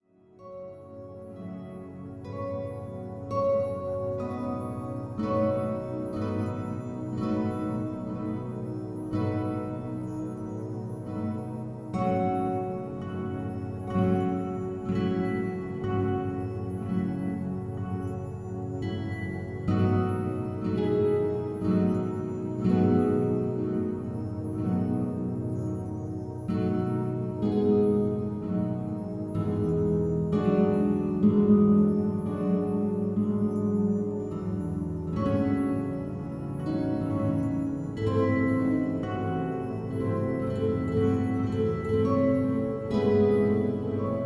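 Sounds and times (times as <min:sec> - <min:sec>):
instrumental music: 0:00.0 - 0:44.2.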